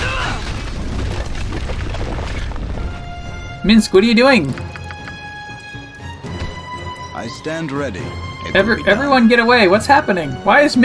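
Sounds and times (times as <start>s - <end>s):
video game earthquake attack rumble: 0.4s - 3.6s
speech: 3.6s - 4.7s, 7.2s - 10.8s.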